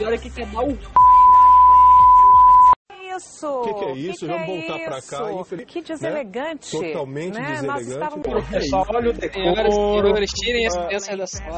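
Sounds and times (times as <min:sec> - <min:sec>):
speech: 0:00.0 - 0:01.0, 0:03.2 - 0:11.5
censor bleep over speech: 0:01.0 - 0:02.8.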